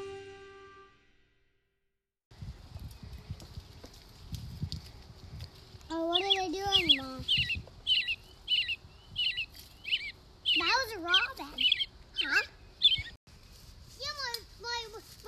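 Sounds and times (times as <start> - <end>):
American robin singing: 6.0 - 13.2.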